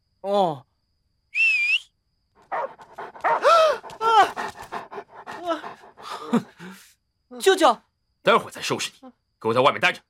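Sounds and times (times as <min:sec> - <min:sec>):
speech: 0:00.2 - 0:00.7, 0:05.4 - 0:10.0
high whistling tone: 0:01.3 - 0:02.0
dog whiny yelping barks: 0:02.4 - 0:04.5
dog panting: 0:02.4 - 0:06.8.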